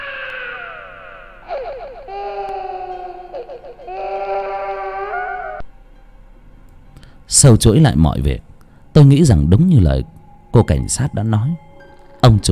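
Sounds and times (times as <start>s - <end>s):
child crying: 0.0s - 5.6s
speech: 7.3s - 12.5s.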